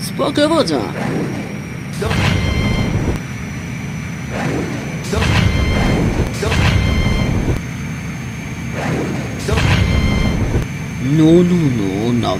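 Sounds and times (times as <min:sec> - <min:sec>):
droning engine hum: 0:00.0 - 0:12.3
high whining tones: 0:00.0 - 0:12.3
explosions: 0:01.0 - 0:03.2, 0:04.3 - 0:07.6, 0:08.7 - 0:10.7
gunfire shooting at airplanes: 0:01.0 - 0:03.2, 0:04.3 - 0:07.6, 0:08.7 - 0:10.7.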